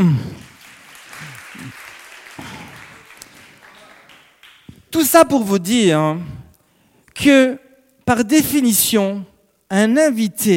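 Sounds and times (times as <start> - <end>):
speech: 0.0 - 0.3, 5.0 - 6.3, 7.2 - 10.5
audience applause: 0.0 - 4.7.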